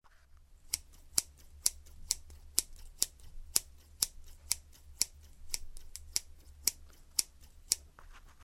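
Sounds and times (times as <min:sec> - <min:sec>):
scissors cutting: 0:00.6 - 0:08.4.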